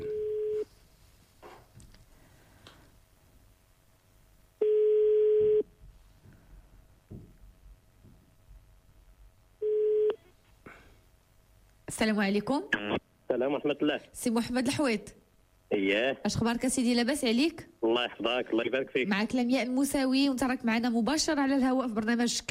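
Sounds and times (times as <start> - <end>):
telephone ringback tone as a radio call-in connects: 0.0 - 0.6, 4.6 - 5.6, 9.6 - 10.2
speech: 12.0 - 15.2, 15.8 - 22.4.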